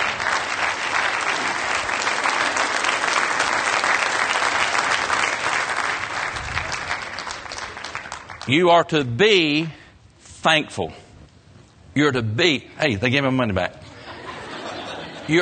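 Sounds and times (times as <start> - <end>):
audience applause: 0.0 - 8.6
speech: 8.5 - 9.8, 10.4 - 11.0, 12.0 - 13.8, 15.3 - 15.4
laughter: 13.7 - 15.4.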